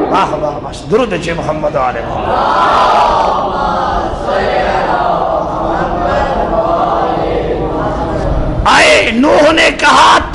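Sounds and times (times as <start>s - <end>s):
speech: 0.1s - 4.6s, 8.8s - 10.3s
crowd at a religious gathering chanting a response to a call: 2.1s - 8.6s.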